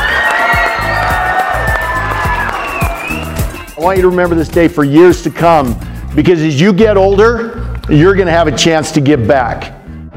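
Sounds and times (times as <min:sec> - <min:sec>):
school crowd applauding: 0:00.0 - 0:03.7
speech: 0:03.8 - 0:09.8.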